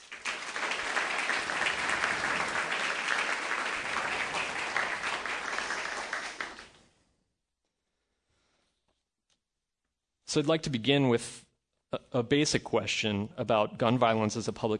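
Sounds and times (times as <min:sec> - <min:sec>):
Commonwealth Club audience clapping for panelists: 0:00.0 - 0:06.8
speech: 0:10.3 - 0:14.7.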